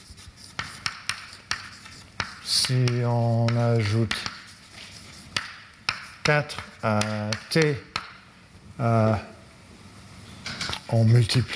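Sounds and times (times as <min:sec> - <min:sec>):
scratchy writing during a maths explanation: 0:00.0 - 0:07.7
speech: 0:02.6 - 0:04.3, 0:06.3 - 0:07.9, 0:08.8 - 0:09.3, 0:10.9 - 0:11.5.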